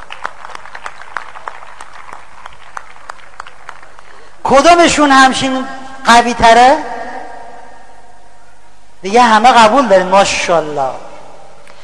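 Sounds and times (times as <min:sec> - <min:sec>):
audience applause: 0:00.0 - 0:04.3
speech: 0:04.5 - 0:06.9, 0:09.0 - 0:11.1.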